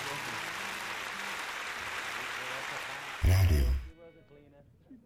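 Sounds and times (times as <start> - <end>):
applause: 0.0 - 3.9.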